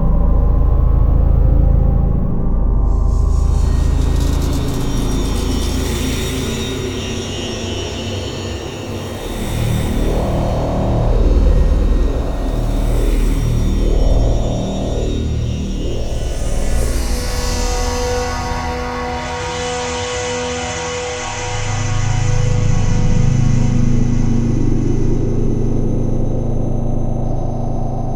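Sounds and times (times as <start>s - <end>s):
dark textured ambience: 0.0s - 28.1s.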